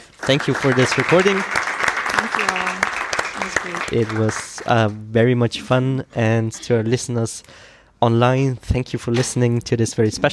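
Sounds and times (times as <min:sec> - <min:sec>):
crowd applause: 0:00.0 - 0:04.8
speech: 0:00.2 - 0:01.7, 0:03.6 - 0:10.3
cheers: 0:00.3 - 0:04.4.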